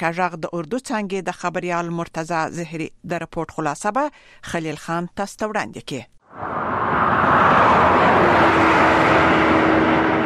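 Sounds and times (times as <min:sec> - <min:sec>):
speech: 0:00.0 - 0:06.9
traffic on the Kalat-Quetta-Chaman national highway in Balochistan: 0:06.3 - 0:10.2.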